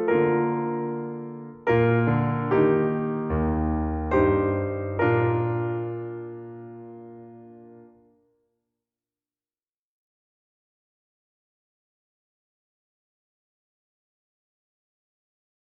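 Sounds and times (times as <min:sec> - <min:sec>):
accompaniment in E flat: 0:00.1 - 0:07.7.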